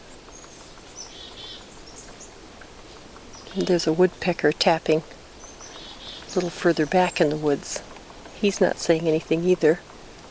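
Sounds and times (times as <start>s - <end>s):
chickadees chirping: 0.0s - 10.2s
hissing noise: 0.0s - 10.2s
speech: 3.6s - 5.2s, 6.3s - 9.9s.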